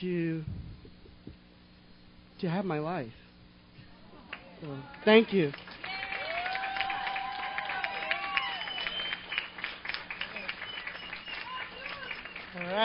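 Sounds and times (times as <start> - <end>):
speech: 0.0 - 0.6, 2.4 - 3.2, 4.6 - 5.8, 12.6 - 12.8
audience applauding: 4.3 - 12.8
people cheering: 5.7 - 12.8.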